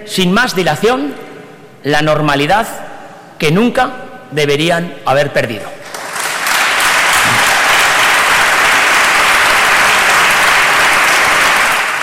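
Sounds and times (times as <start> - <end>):
speech: 0.0 - 5.8
applause in the Parlamento de La Rioja: 5.8 - 12.0.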